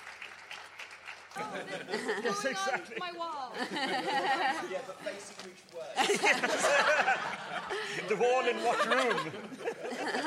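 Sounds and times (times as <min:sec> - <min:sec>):
audience applause: 0:00.0 - 0:02.4
laughter: 0:01.4 - 0:05.2, 0:05.9 - 0:10.2
speech: 0:01.4 - 0:10.2.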